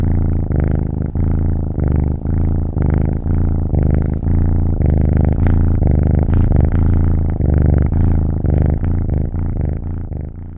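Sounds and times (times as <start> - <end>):
domestic cat kitten purring: 0.0 - 10.5.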